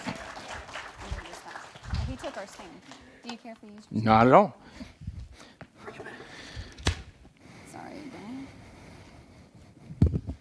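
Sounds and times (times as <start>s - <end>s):
crowd applauding: 0.0s - 3.2s
speech: 2.1s - 5.0s.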